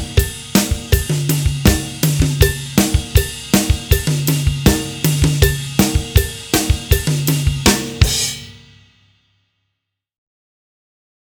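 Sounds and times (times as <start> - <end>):
duet drum beat at 80 BPM: 0.0 - 8.7.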